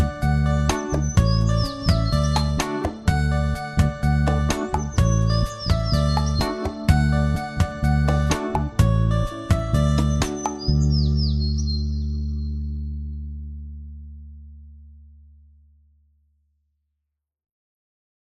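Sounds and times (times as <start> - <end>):
instrumental music: 0.0 - 14.2.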